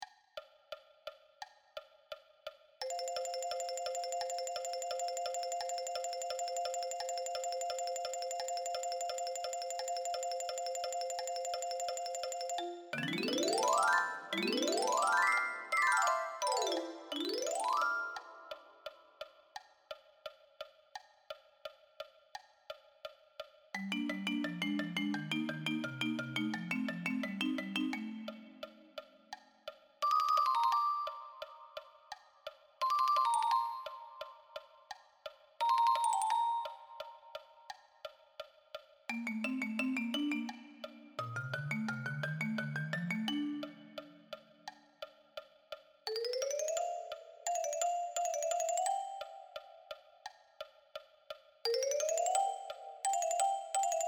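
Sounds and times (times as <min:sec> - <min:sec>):
marimba: 0:02.8 - 0:18.8, 0:23.8 - 0:29.1, 0:30.0 - 0:31.9, 0:32.8 - 0:34.6, 0:35.6 - 0:37.5, 0:39.1 - 0:44.8, 0:46.1 - 0:50.1, 0:51.7 - 0:54.0.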